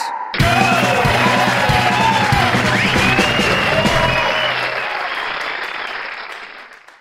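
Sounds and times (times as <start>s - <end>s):
winning music: 0.4s - 5.3s.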